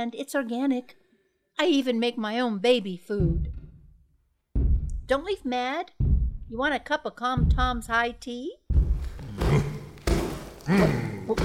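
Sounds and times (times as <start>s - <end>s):
speech: 0.0s - 1.0s, 1.6s - 3.6s, 5.1s - 9.7s, 10.6s - 11.4s
stomping on a garden: 8.8s - 11.4s.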